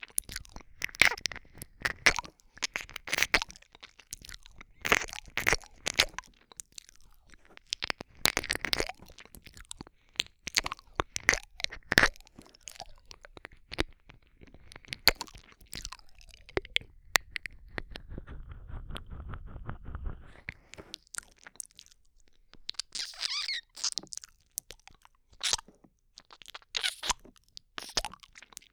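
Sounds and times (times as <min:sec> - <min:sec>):
ear licking ASMR: 0:00.0 - 0:28.7
kissing: 0:22.8 - 0:24.0, 0:25.4 - 0:25.6, 0:26.8 - 0:27.2.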